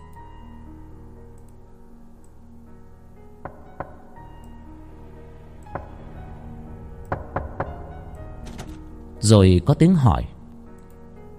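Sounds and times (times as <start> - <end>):
knocking on a door: 3.5 - 4.2, 5.8 - 6.2, 7.1 - 8.8
speech: 9.2 - 10.4.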